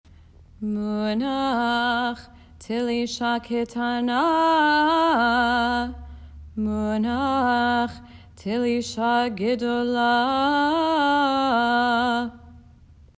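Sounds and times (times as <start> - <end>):
Hebrew cantillation chanting: 0.6 - 12.8.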